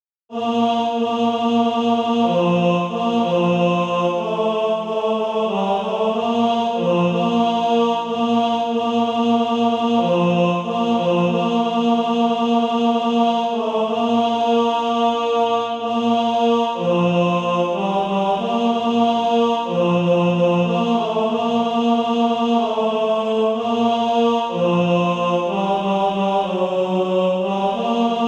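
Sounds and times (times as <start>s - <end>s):
tenor singing: 0.3s - 28.2s.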